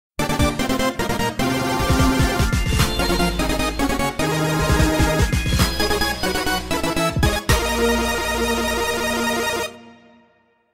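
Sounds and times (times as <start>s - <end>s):
synthesizer: 0.2s - 10.7s.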